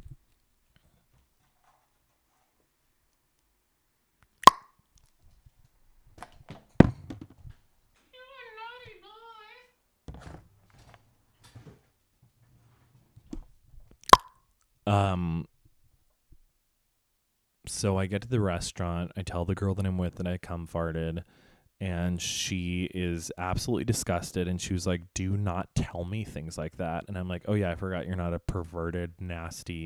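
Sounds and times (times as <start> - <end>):
water bottle knocked over by a cat: 6.3 - 7.4
speech: 14.9 - 15.5, 17.8 - 29.8.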